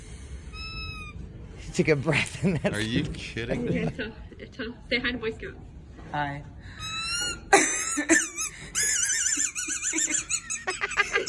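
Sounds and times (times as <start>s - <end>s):
squeaky toy squeaking: 0.5s - 1.3s, 6.8s - 11.2s
speech: 1.7s - 6.8s
laughter: 2.1s - 4.2s, 7.5s - 11.2s.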